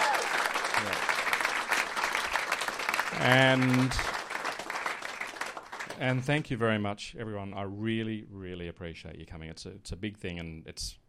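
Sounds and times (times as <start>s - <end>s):
person cheering: 0.0s - 1.1s
audience applause: 0.0s - 6.2s
speech: 0.8s - 1.1s, 3.2s - 4.1s, 6.0s - 11.0s.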